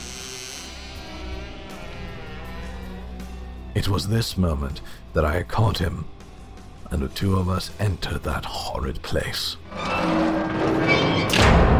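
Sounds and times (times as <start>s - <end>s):
speech: 3.7s - 6.2s, 6.9s - 11.0s
door swinging closed: 9.7s - 11.7s.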